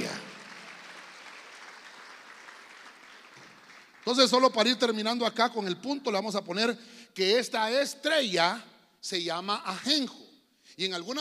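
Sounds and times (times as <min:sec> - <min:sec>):
audience clapping loudly: 0:00.0 - 0:05.0
speech: 0:04.1 - 0:11.1.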